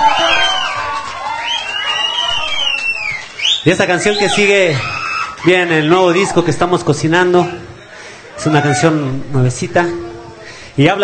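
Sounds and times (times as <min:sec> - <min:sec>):
audience applause and cheering: 0:00.0 - 0:06.6
speech: 0:03.6 - 0:07.7, 0:08.4 - 0:10.1, 0:10.8 - 0:11.0.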